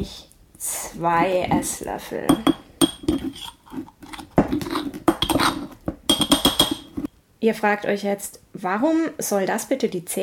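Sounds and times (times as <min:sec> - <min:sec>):
speech: 0:00.0 - 0:03.5, 0:07.4 - 0:10.2
glass jar being opened: 0:02.3 - 0:07.1
irregular clinks and gritty scraping: 0:02.3 - 0:07.1.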